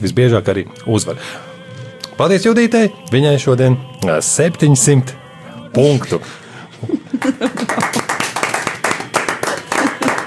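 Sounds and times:
speech: 0:00.0 - 0:01.5, 0:02.2 - 0:07.4
laughter: 0:06.7 - 0:08.4, 0:09.4 - 0:10.2
studio audience applause: 0:07.2 - 0:10.2.

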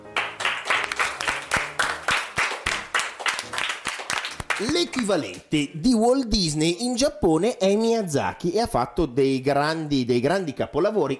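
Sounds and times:
audience applause: 0:00.0 - 0:05.2
speech: 0:04.6 - 0:11.1.

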